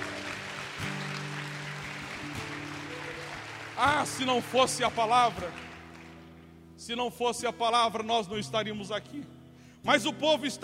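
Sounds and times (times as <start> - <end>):
crowd clapping: 0.0 - 6.6
speech: 3.8 - 5.7, 6.8 - 10.6.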